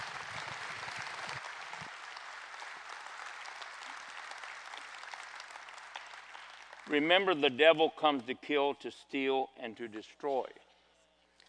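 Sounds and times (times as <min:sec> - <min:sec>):
crowd applauding: 0:00.0 - 0:07.2
speech: 0:06.9 - 0:10.6.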